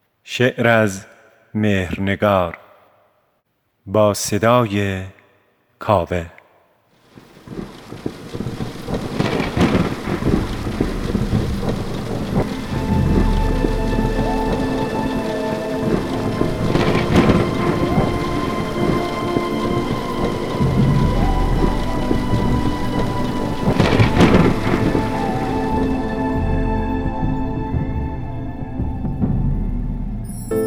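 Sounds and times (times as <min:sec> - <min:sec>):
speech: 0:00.3 - 0:02.6, 0:03.9 - 0:05.2, 0:05.8 - 0:06.4
steady loud hiss of falling rain: 0:07.0 - 0:30.5
deep rolling rumbles of thunder: 0:07.1 - 0:30.5.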